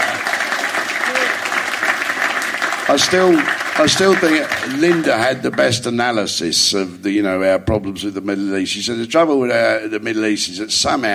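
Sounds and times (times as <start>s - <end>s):
audience applause: 0.0s - 6.0s
speech: 2.9s - 11.1s.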